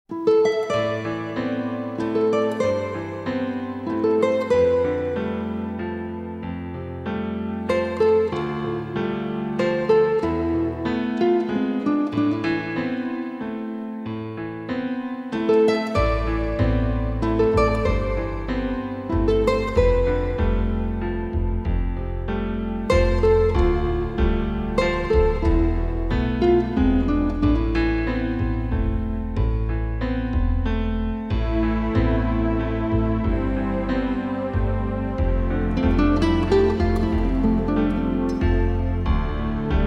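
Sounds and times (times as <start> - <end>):
instrumental waltz: 0.1 - 39.8.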